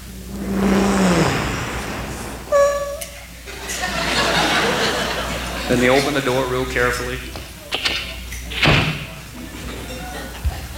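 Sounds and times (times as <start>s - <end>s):
car driving up into a driveway: 0.0s - 3.5s
laughter: 3.5s - 6.4s, 9.4s - 10.7s
speech: 5.7s - 7.4s.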